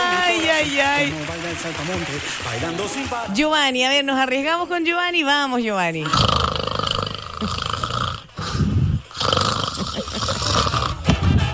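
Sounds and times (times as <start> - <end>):
speech: 0.6 - 6.4, 7.4 - 7.7
snoring: 6.0 - 11.1.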